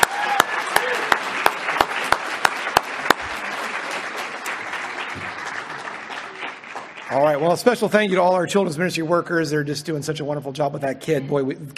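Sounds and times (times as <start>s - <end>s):
audience applause: 0.0s - 7.9s
speech: 7.1s - 11.7s.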